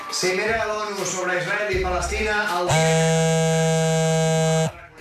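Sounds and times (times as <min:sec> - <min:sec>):
speech: 0:00.1 - 0:04.7
phone notification low electronic buzz: 0:02.7 - 0:04.7.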